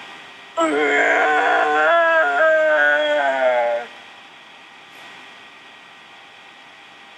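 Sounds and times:
person imitating a T-Rex roar: 0.6 - 3.9.

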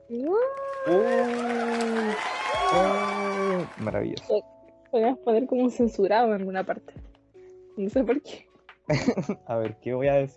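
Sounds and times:
speech: 0.1 - 1.6, 3.8 - 7.1, 7.8 - 10.3
crowd cheering and whooping: 0.5 - 4.2
canned applause: 0.6 - 4.2
laughter: 0.9 - 4.2, 8.9 - 10.3.

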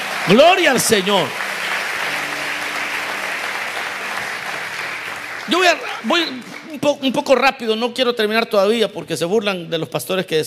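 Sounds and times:
audience applauding: 0.0 - 7.4
speech: 0.2 - 1.5, 5.5 - 10.4.

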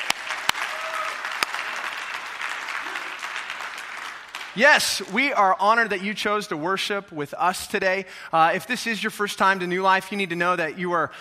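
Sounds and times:
New Life church congregation clapping to welcome first-time visitors: 0.0 - 5.9
speech: 4.6 - 11.1.

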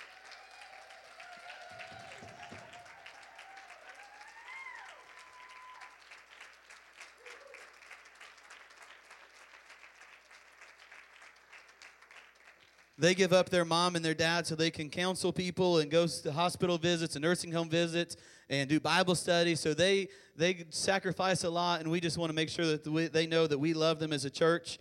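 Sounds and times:
vocal whoops: 0.0 - 6.0, 7.2 - 7.7
crowd hand clapping: 0.0 - 13.2
speech: 13.0 - 24.8.

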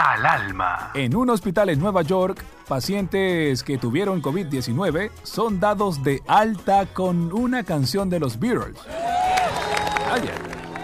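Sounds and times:
speech: 0.1 - 9.2, 10.1 - 10.5
cheers and voices: 8.8 - 10.8
hospital staff applauding: 8.9 - 10.8.

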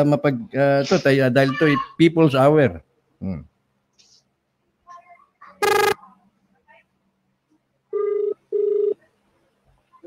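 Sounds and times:
speech: 0.0 - 3.5
brief fragments of voice: 5.4 - 6.1
telephone ringing while a call is placed on a call-in radio show: 5.6 - 6.0, 7.9 - 9.0.

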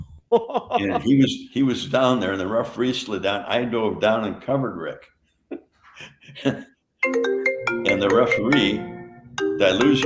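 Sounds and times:
speech: 0.3 - 8.9, 9.6 - 10.0
phone ringing with incoming calls: 7.0 - 10.0.

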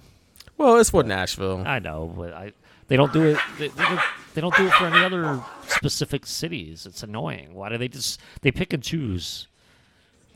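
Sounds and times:
speech: 0.6 - 9.5
dog attacking his own tail growling and barking: 3.0 - 5.9.

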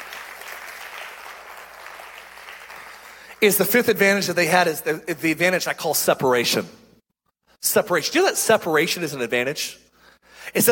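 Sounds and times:
audience hand clapping: 0.0 - 3.7
speech: 3.4 - 6.8, 7.7 - 9.8, 10.5 - 10.6.

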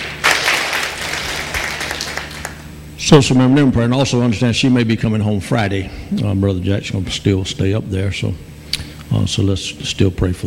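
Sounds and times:
audience clapping: 0.0 - 2.7
speech: 3.1 - 8.5, 9.1 - 10.4.

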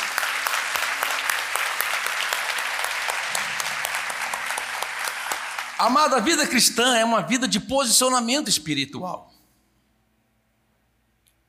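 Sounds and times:
audience applause: 0.0 - 6.5
speech: 5.8 - 9.4.

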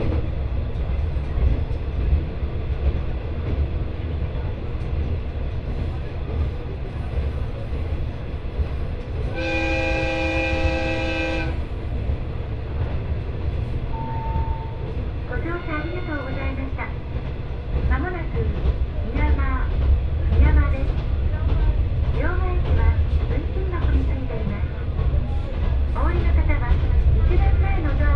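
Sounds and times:
train on the Etsumi-Hoku Line from Hakariishi to Fukui: 0.0 - 28.1.

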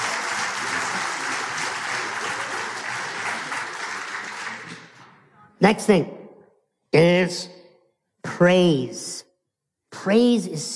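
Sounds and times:
audience round of applause: 0.0 - 5.0
speech: 5.6 - 6.2, 7.0 - 7.6, 8.4 - 9.3, 9.9 - 10.7.

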